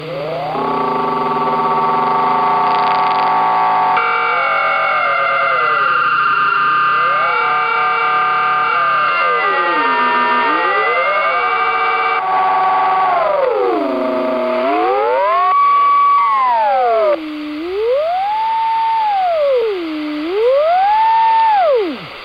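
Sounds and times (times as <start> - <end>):
strange signals: 0.0 - 22.2.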